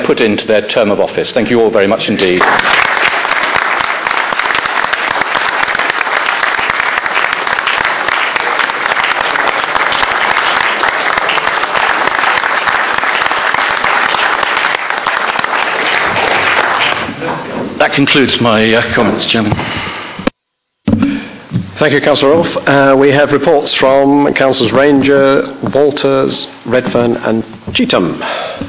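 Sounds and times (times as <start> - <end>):
speech: 0.1 - 3.1, 18.0 - 19.8, 21.8 - 28.5
round of applause: 2.2 - 17.2.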